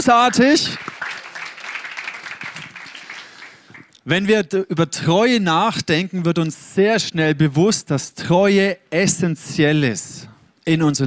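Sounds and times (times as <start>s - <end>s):
speech: 0.0s - 0.9s, 4.0s - 11.0s
audience applauding: 0.7s - 4.0s.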